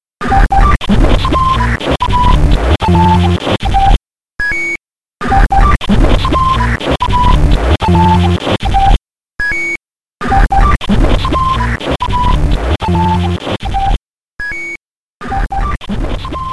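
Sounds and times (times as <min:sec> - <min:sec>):
glitch noise: 0:00.2 - 0:04.0, 0:05.2 - 0:09.0, 0:10.2 - 0:14.0, 0:15.2 - 0:16.5.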